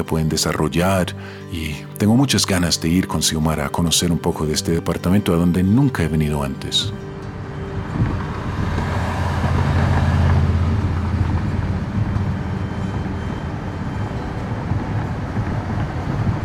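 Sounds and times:
speech: 0.0s - 7.2s
car driving on the road from Florencia toward San Vicente del Caguán: 7.0s - 16.4s.

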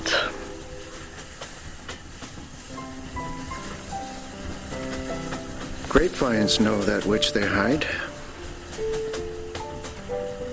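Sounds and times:
train horn hooting: 0.0s - 1.8s
train rumbling past with wheels clattering on the rails: 0.0s - 10.5s
speech: 6.0s - 8.1s.

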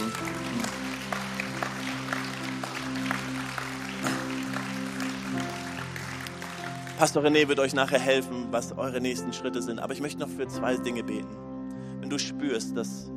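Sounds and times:
audience applauding: 0.0s - 8.2s
speech: 7.0s - 11.5s, 12.1s - 13.1s.

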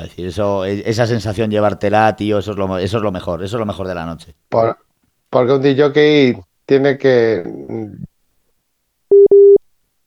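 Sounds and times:
speech: 0.0s - 8.1s
telephone busy signal after a dropped call: 9.1s - 9.6s.

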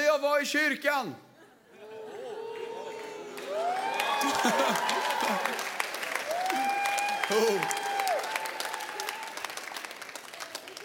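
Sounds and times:
speech: 0.4s - 1.3s, 4.2s - 5.7s, 7.3s - 7.8s
laughter: 1.4s - 5.8s
audience applause: 2.2s - 10.8s.

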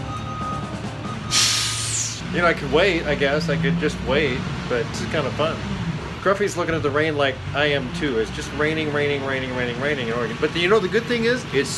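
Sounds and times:
garbage truck engine rumbling: 0.0s - 11.7s
air hiss: 1.3s - 2.2s
speech: 2.3s - 11.7s.

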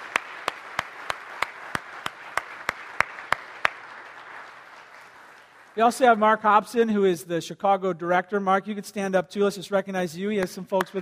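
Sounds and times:
audience applause: 0.0s - 5.8s
speech: 5.8s - 11.0s.

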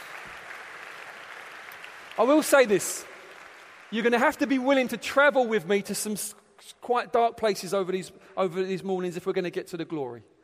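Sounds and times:
audience applause: 0.0s - 4.8s
speech: 2.2s - 3.1s, 3.9s - 10.3s.

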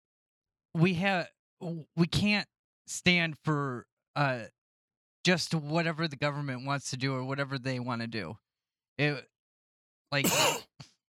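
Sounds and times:
speech: 0.8s - 4.6s, 5.2s - 8.4s, 9.0s - 9.3s, 10.1s - 10.7s
person coughing: 10.2s - 10.8s.

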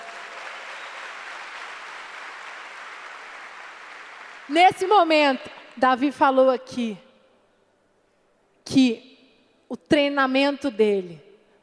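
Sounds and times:
audience applause: 0.0s - 4.5s
speech: 4.5s - 7.0s, 8.7s - 9.1s, 9.7s - 11.2s.

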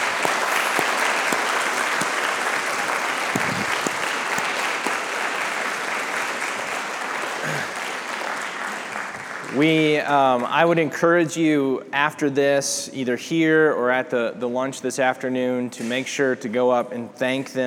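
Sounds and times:
audience applause: 0.0s - 9.6s
speech: 9.6s - 17.6s.

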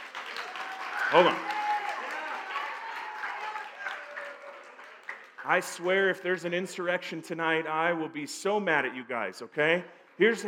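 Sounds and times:
audience clapping: 0.0s - 6.3s
speech: 1.1s - 1.5s, 5.5s - 10.4s.

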